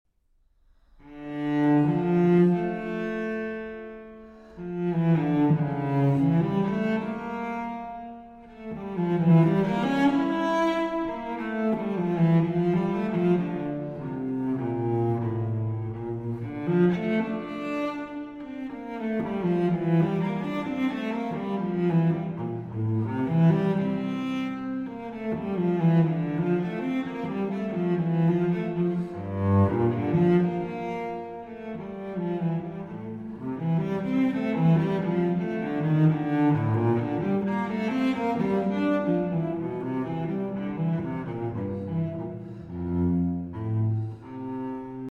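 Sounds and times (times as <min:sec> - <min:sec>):
cello suite in D minor: 0:00.6 - 0:45.0.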